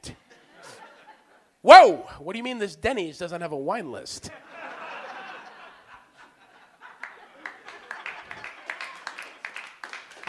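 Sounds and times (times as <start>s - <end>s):
laughter: 0.2s - 1.5s, 4.3s - 9.5s
speech: 1.6s - 4.4s
single audience member clapping: 7.0s - 10.2s.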